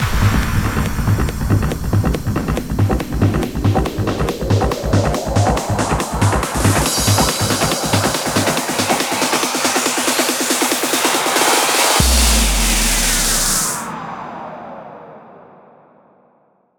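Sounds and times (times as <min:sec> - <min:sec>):
hands up and trance fills: 0:00.0 - 0:14.2.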